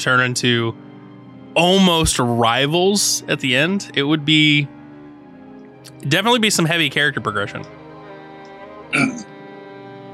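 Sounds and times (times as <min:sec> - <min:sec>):
speech: 0:00.0 - 0:00.9, 0:01.6 - 0:04.8, 0:06.0 - 0:07.8, 0:08.9 - 0:09.2
suppressed cough: 0:09.0 - 0:09.2.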